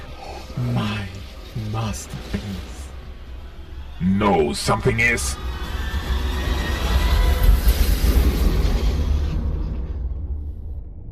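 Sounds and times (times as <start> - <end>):
speech: 0.6 - 1.0, 1.8 - 2.8, 4.0 - 5.6
violent explosion: 5.5 - 10.5.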